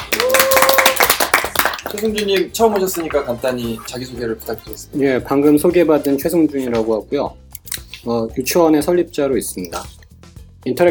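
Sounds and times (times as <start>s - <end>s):
audience clapping: 0.0s - 4.0s
speech: 1.9s - 7.4s, 8.0s - 10.0s, 10.6s - 10.8s.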